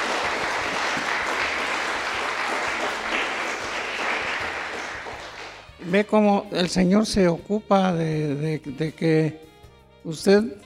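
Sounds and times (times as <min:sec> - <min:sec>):
audience applause: 0:00.0 - 0:05.7
speech: 0:05.9 - 0:10.6.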